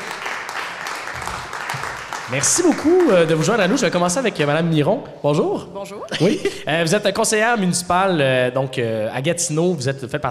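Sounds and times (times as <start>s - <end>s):
audience applause: 0.0s - 4.6s
speech: 2.3s - 10.3s
laughter: 6.0s - 6.8s.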